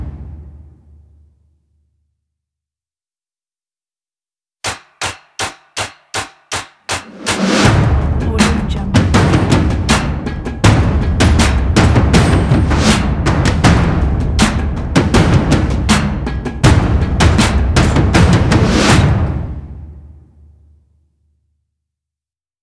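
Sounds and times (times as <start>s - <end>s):
big cinematic drums for a logo: 0.0s - 0.8s, 6.2s - 20.3s.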